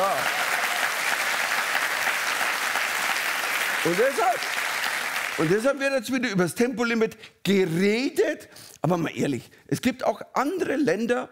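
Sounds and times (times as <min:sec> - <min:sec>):
audience clapping: 0:00.0 - 0:05.9
speech: 0:03.8 - 0:04.6, 0:05.4 - 0:11.3.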